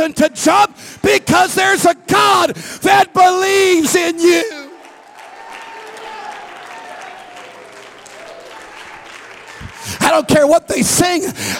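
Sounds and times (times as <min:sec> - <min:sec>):
speech: 0:00.0 - 0:04.6, 0:10.0 - 0:11.5
audience clapping and applauding: 0:04.0 - 0:11.2.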